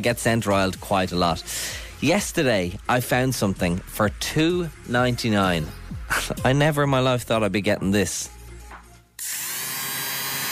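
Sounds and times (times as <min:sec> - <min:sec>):
speech: 0:00.0 - 0:08.4
small electric lint remover motor buzzing: 0:09.2 - 0:10.5.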